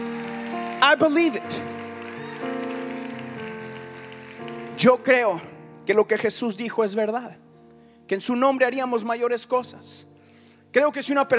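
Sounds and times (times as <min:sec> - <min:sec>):
audience applause: 0:00.0 - 0:04.8
speech: 0:00.9 - 0:01.8, 0:04.8 - 0:07.4, 0:08.1 - 0:10.1, 0:10.7 - 0:11.3.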